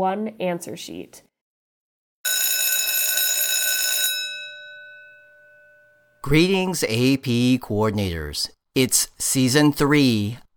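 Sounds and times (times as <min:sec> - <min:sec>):
speech: 0:00.0 - 0:01.3, 0:06.2 - 0:10.4
phone ringing: 0:02.3 - 0:06.2.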